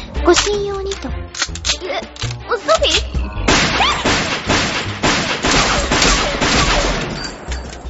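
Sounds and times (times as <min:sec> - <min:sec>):
speech: 0:00.3 - 0:01.1, 0:01.9 - 0:03.1
rapid gunshots: 0:03.5 - 0:07.5.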